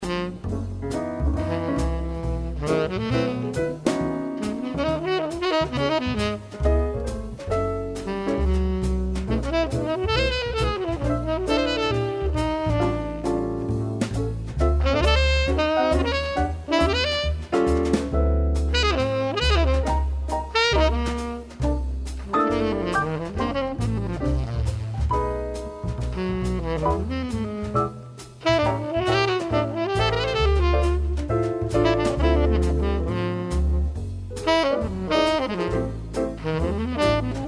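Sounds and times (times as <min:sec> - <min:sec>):
jazz music: 0:00.0 - 0:37.4.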